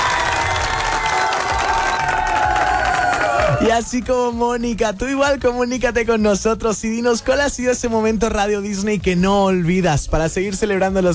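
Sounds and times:
applause: 0.0s - 4.0s
people cheering: 0.0s - 4.4s
speech: 3.6s - 11.1s.

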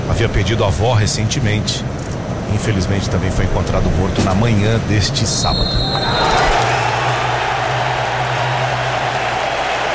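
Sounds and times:
speech: 0.2s - 2.0s, 2.5s - 6.8s
stadium crowd applause: 5.9s - 9.9s.

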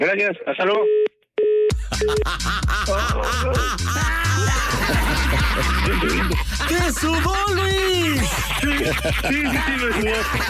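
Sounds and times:
speech: 0.0s - 1.0s, 2.0s - 10.4s
telephone dial tone and dialing beeps: 0.8s - 1.7s
loud music with a pounding bass beat: 1.8s - 10.4s
laughter: 1.9s - 10.4s.

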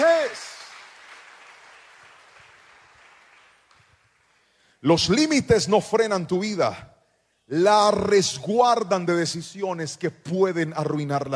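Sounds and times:
audience applauding: 0.0s - 4.3s
speech: 4.8s - 6.9s, 7.5s - 11.3s.

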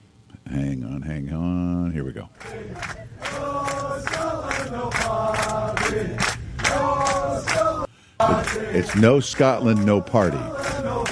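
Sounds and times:
speech: 0.5s - 10.5s
crowd of airplane passengers chanting in unison: 2.4s - 11.1s.

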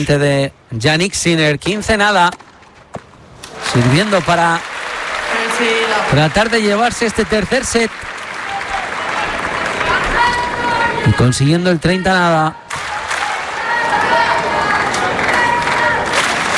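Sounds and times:
speech: 0.0s - 2.5s, 3.7s - 4.7s, 5.6s - 8.1s, 11.1s - 12.7s
tennis crowd applauding: 3.5s - 11.3s, 12.7s - 16.5s.

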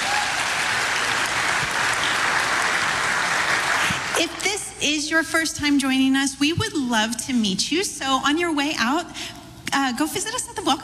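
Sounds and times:
church congregation applauding to welcome first-time visitors: 0.0s - 4.2s
speech: 4.2s - 10.8s.

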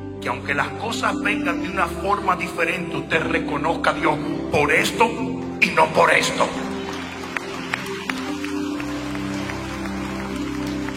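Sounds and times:
speech: 0.2s - 6.7s
audience applause: 6.2s - 10.9s.

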